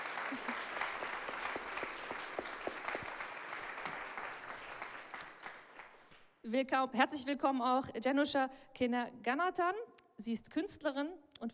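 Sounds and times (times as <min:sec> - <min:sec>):
audience applause: 0:00.0 - 0:06.2
speech: 0:00.3 - 0:00.7, 0:06.5 - 0:11.5.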